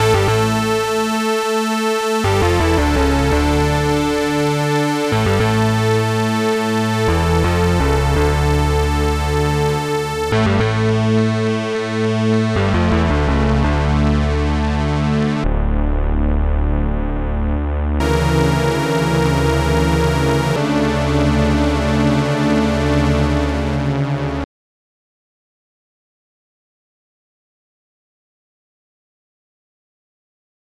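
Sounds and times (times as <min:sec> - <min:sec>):
opening credits music: 0:00.0 - 0:24.4.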